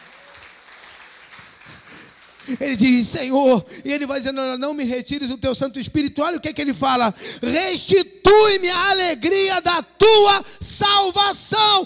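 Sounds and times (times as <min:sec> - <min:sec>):
audience applauding: 0:00.0 - 0:03.0
speech: 0:02.4 - 0:11.8.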